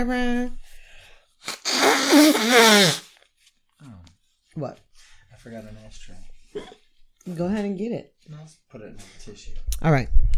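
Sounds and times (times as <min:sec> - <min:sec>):
speech: 0:00.0 - 0:00.6, 0:01.4 - 0:03.0, 0:04.6 - 0:04.8, 0:05.4 - 0:10.3
short sniff: 0:00.8 - 0:03.2
nose blowing: 0:01.4 - 0:03.2.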